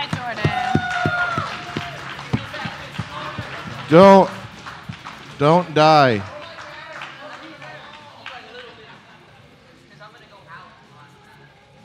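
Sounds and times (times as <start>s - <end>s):
audience clapping and applause: 0.0s - 8.7s
speech: 3.9s - 4.4s, 5.4s - 6.3s.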